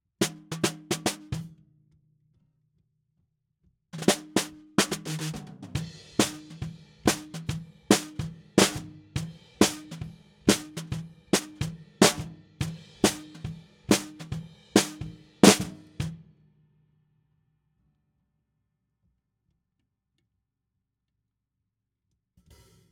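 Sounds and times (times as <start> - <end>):
snare drum: 0.2 - 1.5, 4.0 - 16.2.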